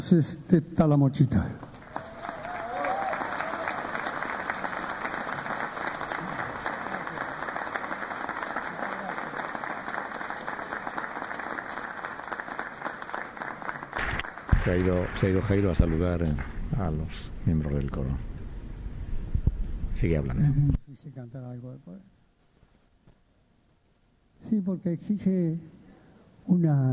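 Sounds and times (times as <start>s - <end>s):
speech: 0.0s - 1.7s, 14.7s - 18.3s, 20.0s - 22.2s, 24.5s - 25.8s, 26.4s - 26.9s
audience applause: 1.6s - 16.5s.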